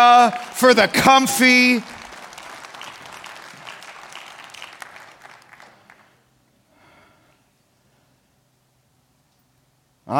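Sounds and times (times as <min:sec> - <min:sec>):
speech: 0:00.0 - 0:02.0
audience applause: 0:00.0 - 0:06.2.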